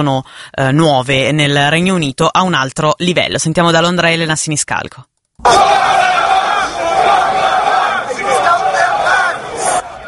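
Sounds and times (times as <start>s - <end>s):
speech: 0.0s - 6.0s
protest crowd chanting slogans: 5.4s - 10.0s.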